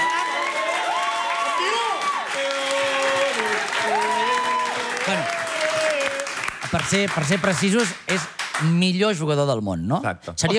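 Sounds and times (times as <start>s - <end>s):
voices cheering: 0.0s - 6.4s
crowd applause: 0.0s - 8.7s
speech: 6.8s - 10.5s.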